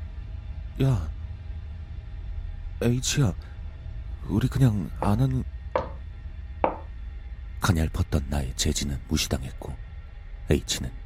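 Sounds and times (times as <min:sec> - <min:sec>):
faint hum: 0:00.0 - 0:11.0
speech: 0:00.8 - 0:01.2, 0:02.8 - 0:03.5, 0:04.2 - 0:05.5, 0:07.6 - 0:09.8, 0:10.5 - 0:11.0
light knocks on a wall: 0:05.8 - 0:06.0, 0:06.6 - 0:06.9.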